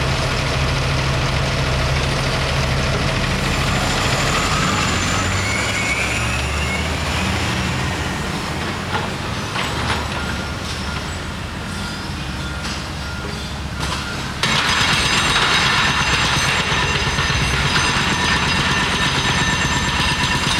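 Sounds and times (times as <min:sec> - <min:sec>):
construction site ambience at the Downtown Houston Criminal Justice Center: 0:00.0 - 0:20.5.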